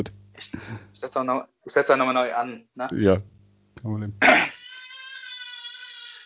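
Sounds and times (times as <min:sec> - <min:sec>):
speech: 0:00.0 - 0:04.7
toddler screaming: 0:04.2 - 0:06.2.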